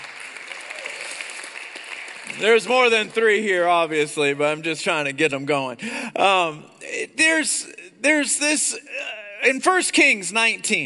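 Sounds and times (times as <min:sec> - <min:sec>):
small audience clapping: 0:00.0 - 0:04.2
speech: 0:02.4 - 0:10.8.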